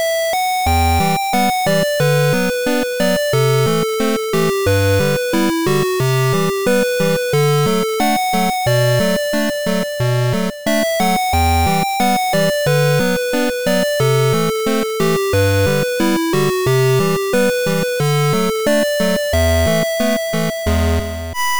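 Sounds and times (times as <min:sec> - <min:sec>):
8-bit music: 0:00.6 - 0:21.5.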